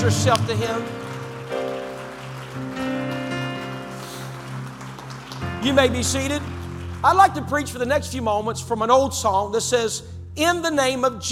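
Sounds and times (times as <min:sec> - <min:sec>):
speech: 0:00.0 - 0:01.9, 0:05.6 - 0:11.3
audience clapping hands: 0:00.0 - 0:07.9.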